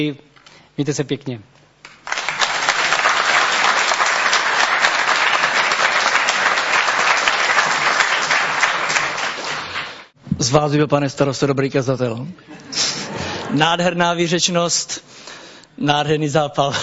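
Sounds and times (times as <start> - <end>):
speech: 0.0 - 1.6, 10.5 - 12.8, 13.5 - 15.2, 15.8 - 16.8
audience applause: 1.9 - 10.1.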